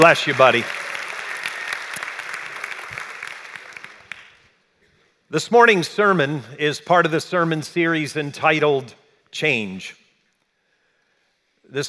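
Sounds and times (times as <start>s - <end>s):
speech: 0.0s - 0.8s, 5.3s - 10.0s, 11.7s - 11.8s
audience applauding: 0.0s - 4.5s.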